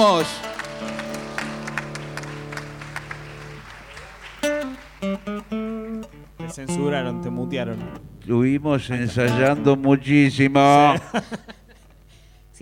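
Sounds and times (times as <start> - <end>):
speech: 0.0 - 0.9, 5.0 - 5.6, 6.5 - 11.6
applause: 0.0 - 6.2
laughter: 10.6 - 12.0.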